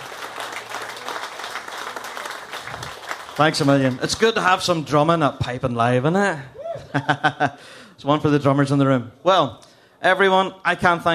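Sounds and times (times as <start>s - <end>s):
crowd clapping: 0.0s - 4.5s
speech: 3.4s - 11.1s.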